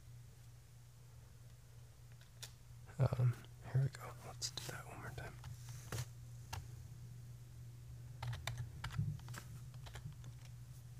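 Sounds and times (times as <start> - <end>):
speech: 3.0 - 5.6
typing on a computer keyboard: 8.2 - 10.5.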